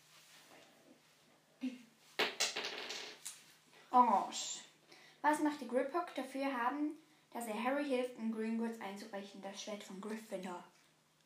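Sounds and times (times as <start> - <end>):
dice being rolled: 2.2 - 3.2
speech: 3.9 - 4.6, 5.2 - 10.8.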